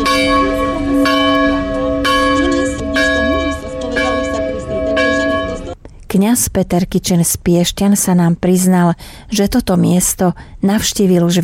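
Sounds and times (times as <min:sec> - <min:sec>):
local church bells ringing: 0:00.0 - 0:05.8
speech: 0:06.2 - 0:11.4.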